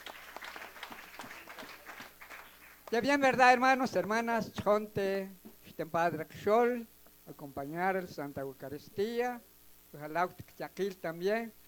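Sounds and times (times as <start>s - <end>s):
audience applause: 0.0s - 3.0s
speech: 2.9s - 11.6s.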